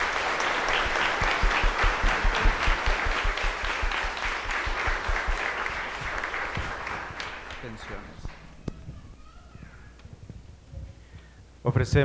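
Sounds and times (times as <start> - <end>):
audience applauding: 0.0 - 9.6
speech: 11.8 - 12.0.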